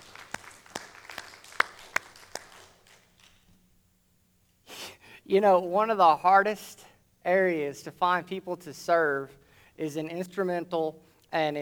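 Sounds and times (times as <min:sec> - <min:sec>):
sparse applause from a small group: 0:00.0 - 0:03.4
speech: 0:05.3 - 0:11.5.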